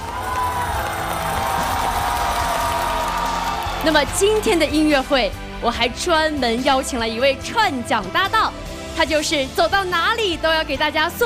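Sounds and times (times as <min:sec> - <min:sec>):
faint murmur of cheering: 0:00.0 - 0:04.7
audience applause: 0:00.0 - 0:04.9
speech: 0:03.8 - 0:11.2.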